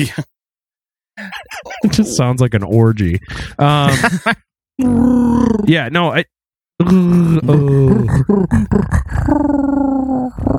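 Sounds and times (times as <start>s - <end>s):
speech: 0.0s - 0.3s, 1.2s - 10.5s
laughter: 3.6s - 4.4s
human voice mimicking a grizzly bear's purring growl: 4.8s - 5.8s, 6.8s - 10.5s.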